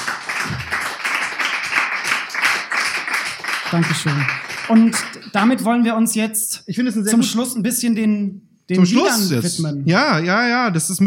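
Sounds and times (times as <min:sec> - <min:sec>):
audience applause: 0:00.0 - 0:05.7
speech: 0:03.7 - 0:11.0.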